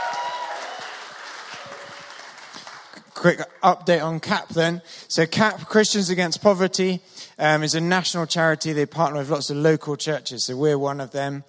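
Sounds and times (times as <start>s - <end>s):
audience applause: 0.0s - 3.6s
speech: 3.2s - 11.4s.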